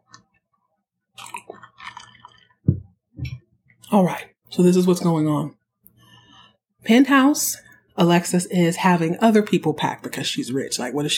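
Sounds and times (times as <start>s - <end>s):
person taking a drink: 1.2s - 2.9s
speech: 3.9s - 5.6s, 6.8s - 11.1s.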